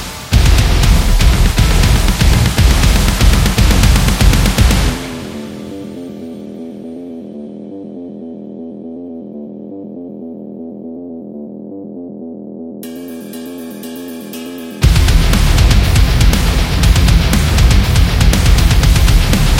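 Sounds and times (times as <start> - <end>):
Tabata metal workout music: 0.0 - 8.4, 12.8 - 19.5.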